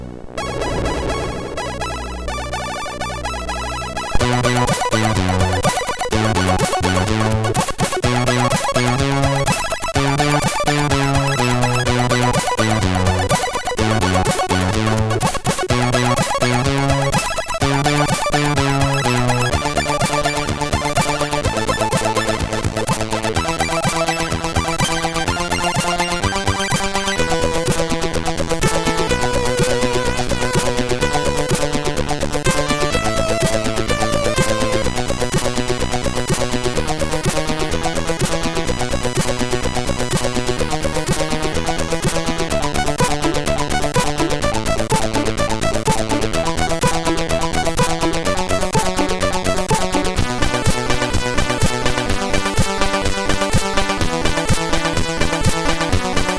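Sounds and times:
disco music: 0.4s - 56.3s.

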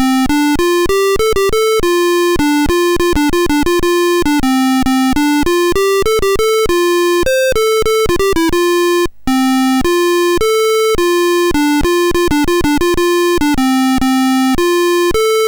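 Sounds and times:
MOS6581R3 sound chip computer music: 0.0s - 15.4s.

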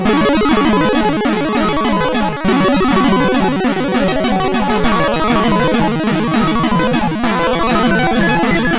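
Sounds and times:
airplane sound on a MOS6581R3 SID chip: 0.1s - 8.7s.

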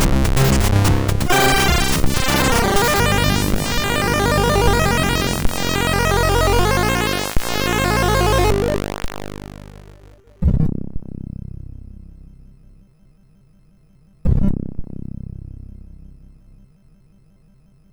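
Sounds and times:
chiptune music from MOS6581R2 sound chip: 0.0s - 10.2s.

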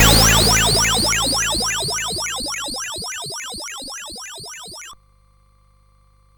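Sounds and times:
CSG8580R5 pulse wave: 0.0s - 5.0s.

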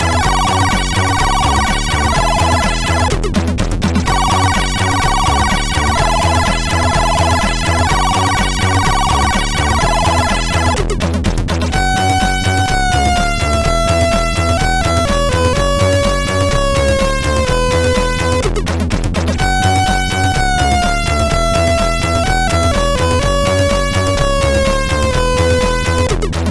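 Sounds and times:
MOS6581R4 SID chip synth sound: 0.0s - 3.4s, 4.0s - 11.0s, 11.6s - 26.4s.

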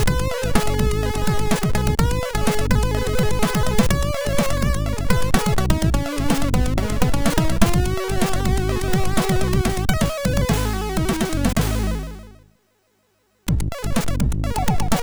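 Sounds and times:
party music on SID MOS6581R4 sound chip: 0.0s - 12.4s, 13.5s - 15.0s.

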